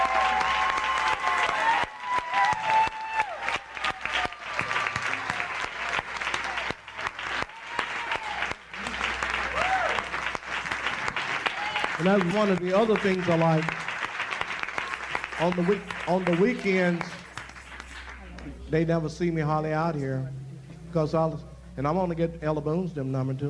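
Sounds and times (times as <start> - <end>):
audience applause: 0.0 - 18.6
speech: 12.0 - 13.8, 15.4 - 17.2, 18.7 - 23.4.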